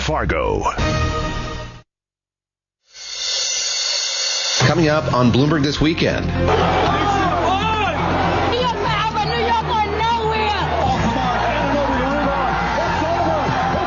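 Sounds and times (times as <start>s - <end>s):
speech: 0.1s - 1.1s, 4.6s - 6.9s
large crowd roaring and cheering a championship win: 4.6s - 13.8s.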